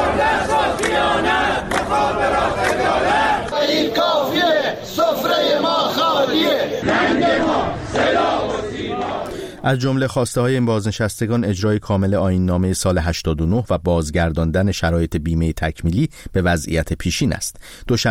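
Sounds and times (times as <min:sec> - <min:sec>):
crowd of protesters chanting at rally: 0:00.0 - 0:09.6
speech: 0:09.6 - 0:18.0.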